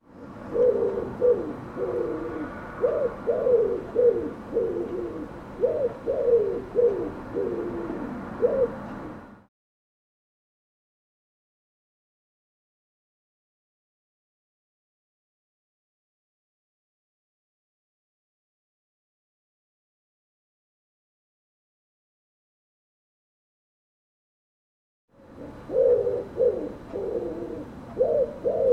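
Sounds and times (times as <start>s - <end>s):
bird cooing in husky low phrases: 0.1s - 9.4s, 25.2s - 28.7s.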